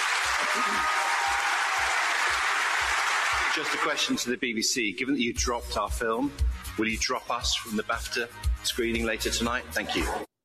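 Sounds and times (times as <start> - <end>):
large audience applause: 0.0 - 4.2
speech: 0.5 - 1.1, 3.5 - 10.3.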